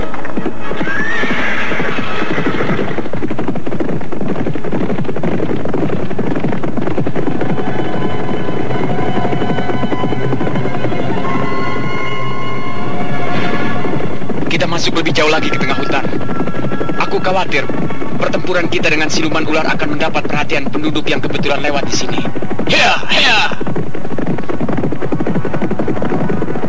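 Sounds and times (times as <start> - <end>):
horses galloping: 0.0 - 26.6
high horse whinny: 0.4 - 3.1, 7.2 - 18.8, 22.1 - 23.9
speech: 15.2 - 16.0, 17.3 - 23.9.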